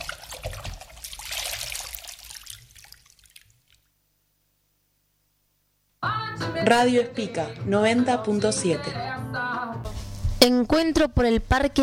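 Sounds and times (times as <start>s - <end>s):
caiman diving into water with a wet splash: 0.0s - 3.5s
water gurgling and dribbling after caiman dive: 0.0s - 4.0s
speech: 6.6s - 9.0s, 10.4s - 11.8s.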